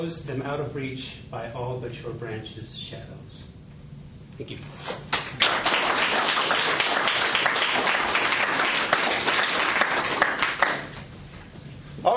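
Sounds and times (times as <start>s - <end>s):
speech: 0.0s - 3.6s, 4.4s - 5.8s
audience applause and clapping: 5.1s - 11.0s.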